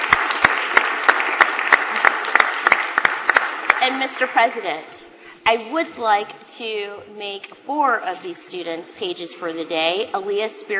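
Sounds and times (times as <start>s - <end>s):
applause in a state senate chamber welcoming visiting students: 0.0s - 4.5s
speech: 3.9s - 10.7s.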